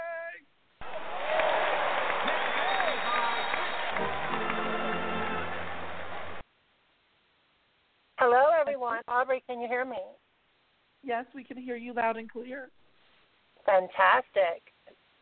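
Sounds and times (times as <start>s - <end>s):
applause welcoming a guest: 0.8s - 6.4s
speech: 9.1s - 10.2s, 11.0s - 12.8s, 13.7s - 14.7s.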